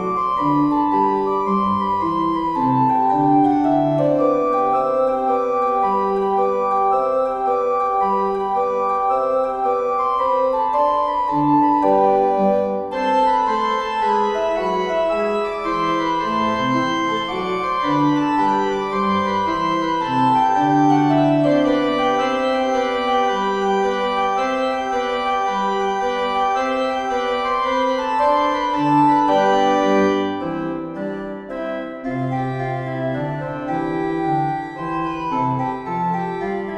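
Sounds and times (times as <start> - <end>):
organ playing an air and gavotte in C major: 0.0 - 36.7.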